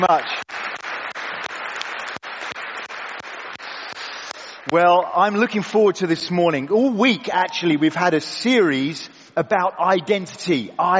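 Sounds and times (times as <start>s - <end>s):
speech: 0.0s - 0.5s, 4.7s - 10.9s
audience applause: 0.0s - 4.7s.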